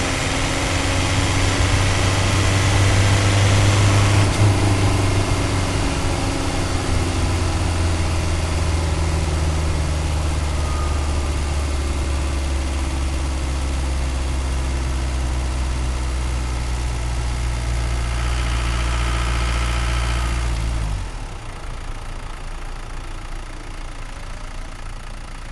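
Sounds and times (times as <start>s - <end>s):
Renault Master 28DTI engine accelerating: 0.0s - 22.9s.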